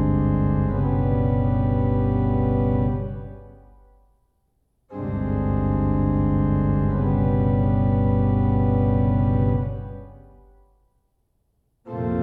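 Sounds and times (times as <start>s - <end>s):
organist playing a hymn: 0.0s - 3.7s, 4.9s - 10.5s, 11.9s - 12.2s.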